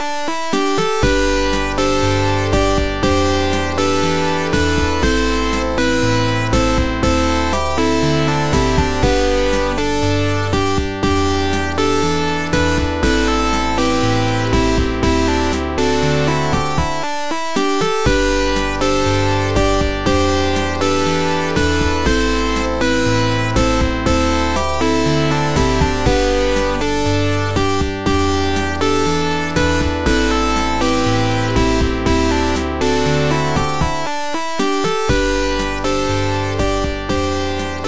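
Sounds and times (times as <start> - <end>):
tense song: 0.0 - 37.8.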